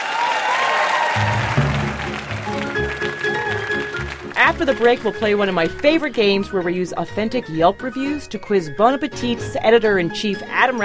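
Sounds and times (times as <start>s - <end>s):
audience applause: 0.0s - 5.8s
speech: 4.4s - 10.8s.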